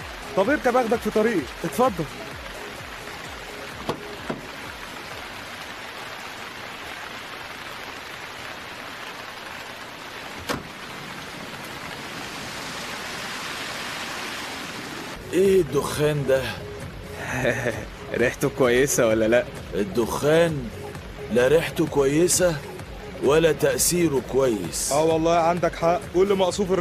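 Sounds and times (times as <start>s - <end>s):
rain: 0.0s - 26.7s
speech: 0.4s - 2.3s, 15.4s - 16.7s, 17.4s - 26.7s
sharp knocks: 3.8s - 4.5s.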